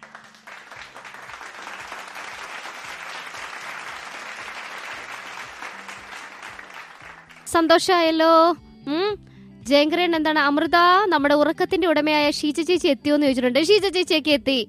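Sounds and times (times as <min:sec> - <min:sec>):
group applause rewarding quiz participants: 0:00.0 - 0:07.6
speech: 0:07.5 - 0:14.6.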